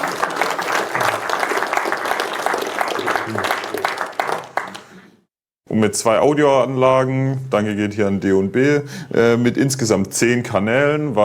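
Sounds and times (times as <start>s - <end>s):
audience applause: 0.0s - 5.1s
speech: 5.8s - 11.2s.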